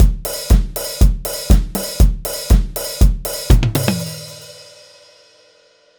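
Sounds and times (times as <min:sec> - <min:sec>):
tom drum: 0:00.0 - 0:04.7.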